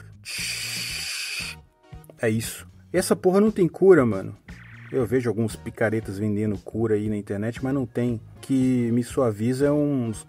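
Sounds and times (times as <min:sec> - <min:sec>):
voice imitating hissing tinnitus: 0:00.0 - 0:01.6
speech: 0:02.2 - 0:10.2.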